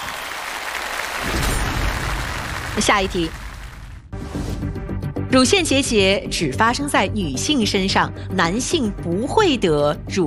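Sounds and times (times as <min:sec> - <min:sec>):
audience clapping after a correct quiz answer: 0:00.0 - 0:04.0
speech: 0:02.8 - 0:03.4, 0:05.3 - 0:10.2.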